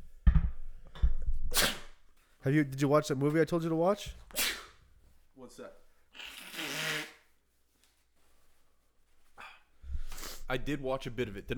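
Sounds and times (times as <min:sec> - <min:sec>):
nose blowing: 0:01.5 - 0:02.0, 0:04.3 - 0:04.9, 0:06.1 - 0:07.5, 0:09.9 - 0:10.5
speech: 0:02.4 - 0:04.4, 0:05.4 - 0:06.3, 0:10.5 - 0:11.5.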